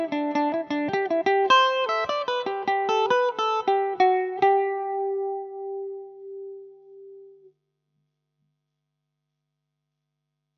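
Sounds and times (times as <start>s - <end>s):
Irish mandolin playing a jig in G major: 0.0s - 7.4s.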